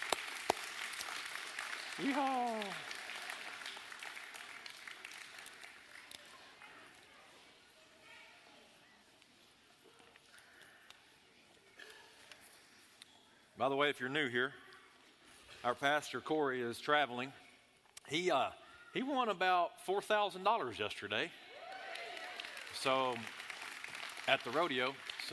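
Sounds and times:
audience applause: 0:00.0 - 0:06.2, 0:21.6 - 0:25.3
speech: 0:02.0 - 0:02.9, 0:13.6 - 0:14.6, 0:15.6 - 0:17.4, 0:18.1 - 0:21.4, 0:22.8 - 0:23.4, 0:24.3 - 0:25.3.

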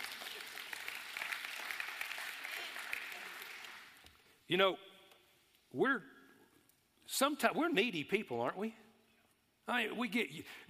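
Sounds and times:
audience clapping: 0:00.0 - 0:04.2
speech: 0:04.5 - 0:04.9, 0:05.7 - 0:06.2, 0:07.1 - 0:08.8, 0:09.7 - 0:10.6.

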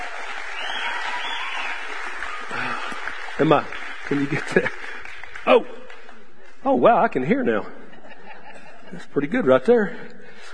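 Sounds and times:
audience applause for the band: 0:00.0 - 0:06.2
speech: 0:03.4 - 0:05.8, 0:06.6 - 0:07.8, 0:08.9 - 0:10.5
laughter: 0:07.5 - 0:09.6.

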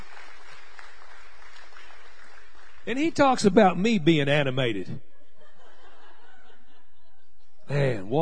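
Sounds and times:
church congregation applauding at the close of a sermon: 0:00.0 - 0:04.0
speech: 0:02.9 - 0:05.1, 0:07.7 - 0:08.2
laughter: 0:05.1 - 0:08.0.

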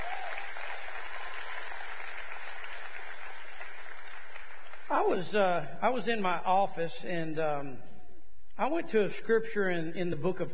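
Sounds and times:
audience applause: 0:00.0 - 0:05.2
speech: 0:05.0 - 0:07.9, 0:08.6 - 0:10.5.

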